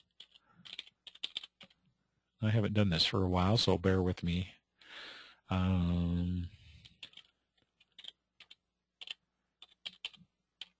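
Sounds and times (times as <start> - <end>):
website address typed on a computer keyboard: 0.0 - 1.8, 6.9 - 10.7
speech: 2.4 - 4.6, 5.5 - 6.5.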